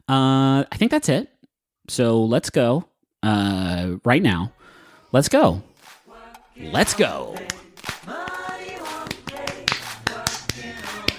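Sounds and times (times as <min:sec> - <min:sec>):
speech: 0:00.1 - 0:01.3, 0:01.9 - 0:05.7, 0:06.6 - 0:08.2
hand claps: 0:06.8 - 0:11.1.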